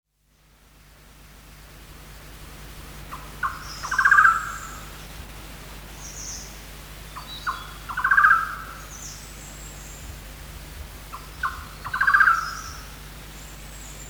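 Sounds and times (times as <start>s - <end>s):
golden-naped barbet rattling call: 3.1s - 4.8s, 7.4s - 8.8s, 11.1s - 12.9s.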